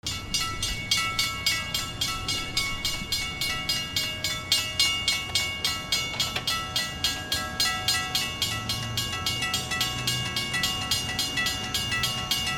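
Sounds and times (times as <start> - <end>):
trains: 0.0 - 12.5.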